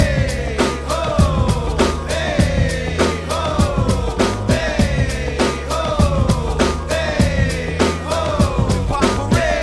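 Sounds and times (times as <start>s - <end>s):
hurrah music loop: 0.0s - 9.6s.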